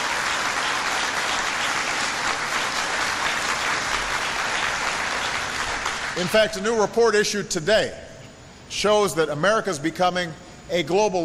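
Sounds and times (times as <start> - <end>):
crowd applause: 0.0 - 6.3
speech: 6.2 - 8.0, 8.7 - 11.2.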